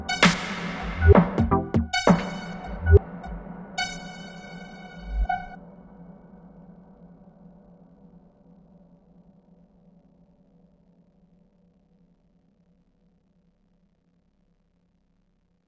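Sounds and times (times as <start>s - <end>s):
granular resampled loop with modulated grain speed: 0.0s - 3.4s.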